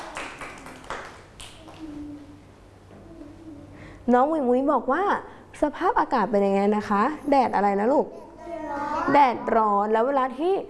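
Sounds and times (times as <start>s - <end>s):
hand claps for a child: 0.0s - 2.0s
speech: 4.1s - 8.3s, 9.0s - 10.6s.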